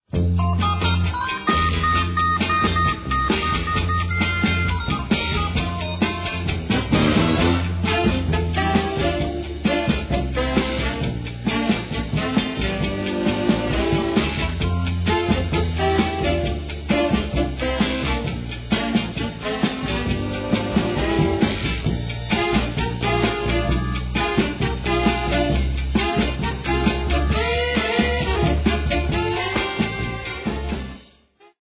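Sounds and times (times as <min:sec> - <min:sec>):
disco trumpet music: 0:00.1 - 0:31.6.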